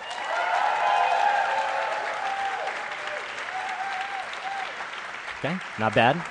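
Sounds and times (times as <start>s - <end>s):
whoops: 0.0s - 4.8s
audience applause: 0.0s - 6.2s
speech: 5.4s - 6.2s.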